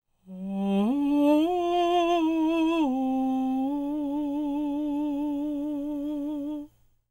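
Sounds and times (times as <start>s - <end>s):
falsetto jazz vocal effect: 0.3s - 6.7s.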